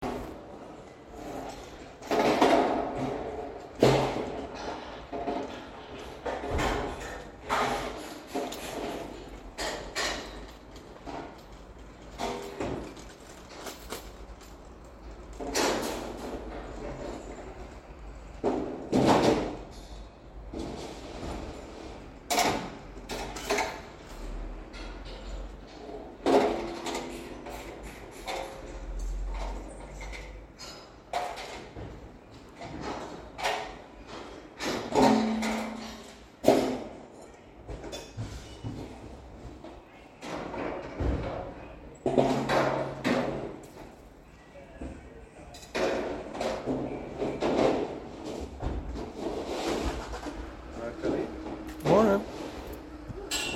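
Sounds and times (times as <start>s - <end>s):
people building scaffolding: 0.0s - 53.5s.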